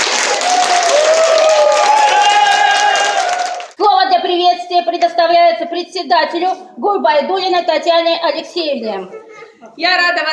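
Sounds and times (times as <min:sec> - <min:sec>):
crowd cheering: 0:00.0 - 0:03.8
hall full of people applauding: 0:00.0 - 0:03.8
speech: 0:04.8 - 0:09.2, 0:09.8 - 0:10.3.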